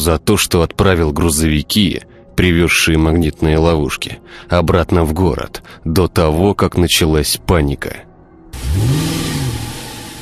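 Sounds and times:
speech: 0.0 - 8.1, 8.8 - 9.2
bus engine roaring as the bus pulls away: 8.5 - 10.1.

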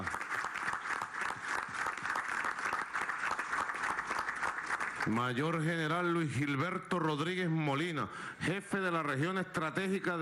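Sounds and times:
audience applause for the national armed forces at an official ceremony: 0.0 - 5.6
speech: 5.0 - 10.2.

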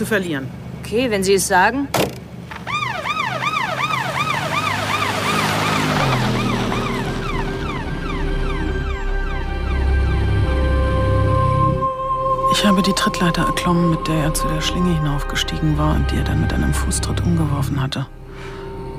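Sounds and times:
speech: 0.0 - 2.2, 12.7 - 18.2
ambulance engine and road noise: 0.0 - 18.9
ambulance siren wailing: 2.5 - 17.0.

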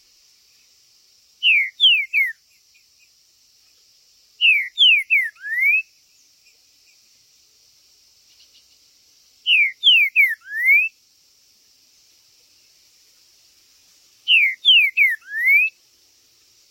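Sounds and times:
green-winged saltator whistling song: 1.4 - 2.4, 4.4 - 5.9, 9.4 - 11.0, 14.2 - 15.8.

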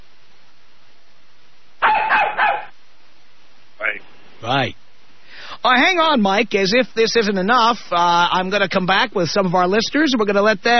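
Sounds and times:
faint steady hiss: 0.0 - 10.7
puppy barking: 1.8 - 2.8
speech: 4.4 - 4.8, 5.6 - 10.7.

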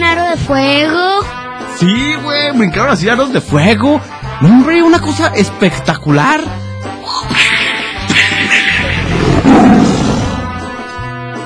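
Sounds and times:
speech: 0.5 - 1.1, 1.8 - 6.6
tiger roaring: 8.1 - 10.6.

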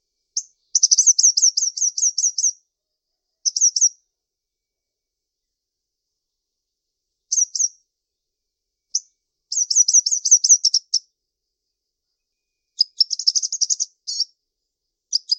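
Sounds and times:
bird chirping in short high sharp notes: 0.0 - 4.1, 7.2 - 7.9, 8.9 - 11.2, 12.1 - 15.3.

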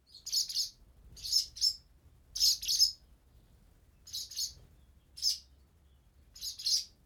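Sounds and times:
swallow chicks chirping: 0.2 - 1.8, 2.4 - 3.0, 4.1 - 5.5, 6.4 - 6.9.

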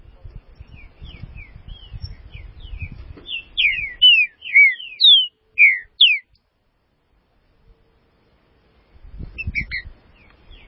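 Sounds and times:
green-winged saltator singing: 1.7 - 6.4.

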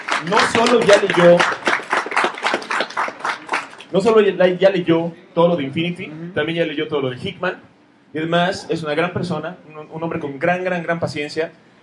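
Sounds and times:
audience clapping for a guest at a comics talk: 0.0 - 4.0
speech: 0.2 - 1.7, 3.9 - 11.7.

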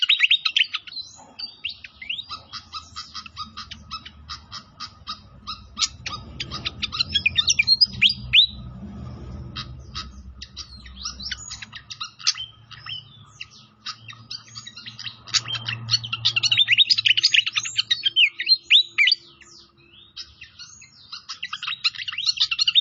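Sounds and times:
pied fantail song whistles and ticks: 0.0 - 8.6, 10.0 - 22.7
low rushing sound: 5.2 - 11.6.

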